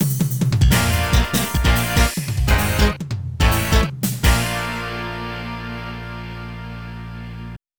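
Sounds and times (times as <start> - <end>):
game over jingle: 0.7 - 6.5.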